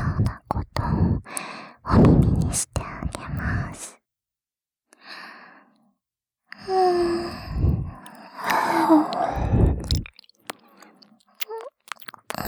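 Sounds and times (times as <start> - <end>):
ASMR ear licking sounds: 0.0 - 3.9, 7.6 - 12.4.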